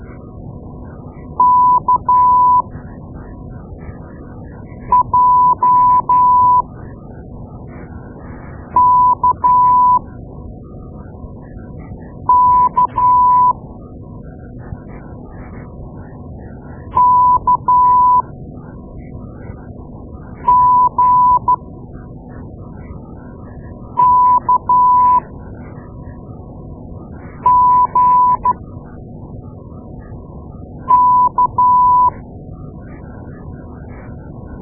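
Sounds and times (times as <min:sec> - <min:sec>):
morse code beeps: 0:01.4 - 0:02.7, 0:04.9 - 0:06.6, 0:08.8 - 0:10.0, 0:12.3 - 0:13.6, 0:17.0 - 0:18.2, 0:20.5 - 0:21.6, 0:24.0 - 0:25.3, 0:27.4 - 0:28.6, 0:30.9 - 0:32.2.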